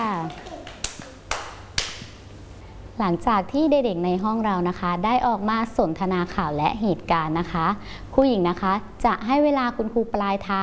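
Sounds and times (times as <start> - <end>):
children clapping for a classmate: 0.0 - 2.2
speech: 3.0 - 10.6.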